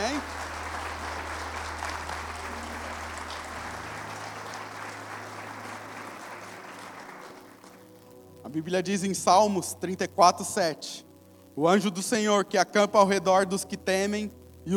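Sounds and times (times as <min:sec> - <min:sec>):
audience applauding: 0:00.0 - 0:08.2
speech: 0:08.5 - 0:14.7.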